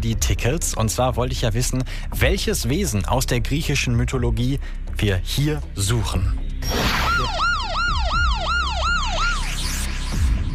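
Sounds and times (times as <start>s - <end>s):
speech: 0.0s - 7.5s
siren: 6.6s - 10.5s.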